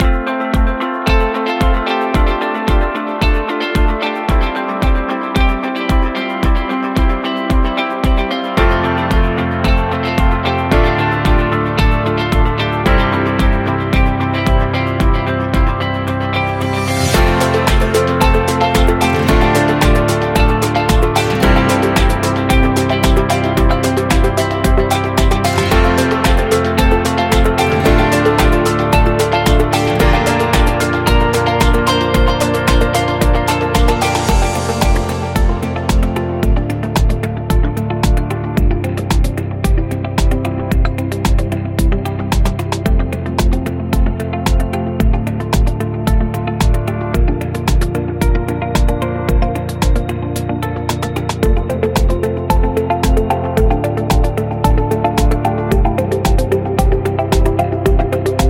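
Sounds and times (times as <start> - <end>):
positive upbeat music: 0.0 - 58.4.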